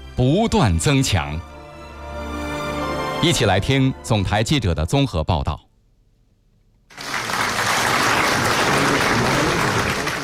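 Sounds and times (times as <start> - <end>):
speech: 0.2 - 1.5, 3.2 - 5.7
crowd applauding warmly in a great hall: 6.9 - 10.2.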